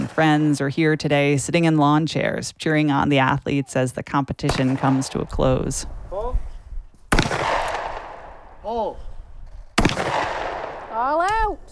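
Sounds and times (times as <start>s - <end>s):
speech: 0.2s - 6.4s, 8.7s - 9.0s
shotgun blasts at shooting competition: 4.4s - 5.7s, 7.1s - 8.6s, 9.8s - 11.0s.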